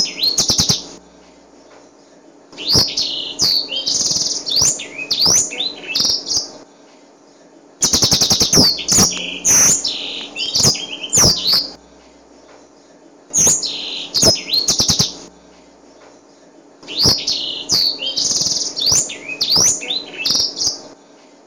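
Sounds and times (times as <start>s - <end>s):
songbird singing rolling trills: 0.0s - 1.0s, 1.6s - 6.6s, 7.2s - 11.8s, 12.5s - 15.3s, 15.9s - 20.9s.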